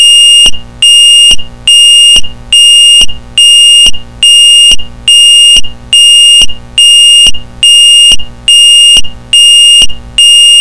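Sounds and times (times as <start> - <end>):
pulse tone: 0.0 - 10.5.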